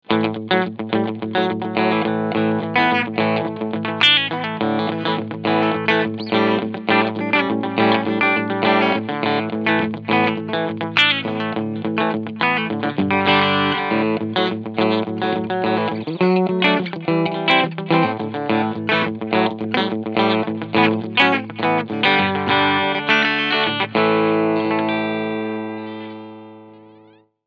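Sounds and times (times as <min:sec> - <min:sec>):
TE 52 clean electric guitar bridge pickup: 0:00.0 - 0:27.3.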